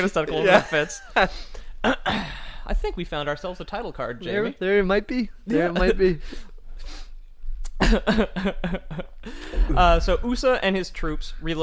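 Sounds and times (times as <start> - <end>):
speech: 0.0 - 7.0, 7.8 - 11.6
person coughing and choking on a drink of bubbly: 1.8 - 2.5, 7.7 - 9.8.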